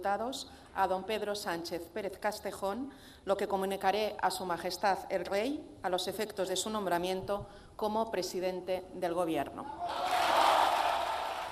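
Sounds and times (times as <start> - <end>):
speech: 0.0 - 10.4
parliament deputies cheering and applauding: 9.8 - 11.5.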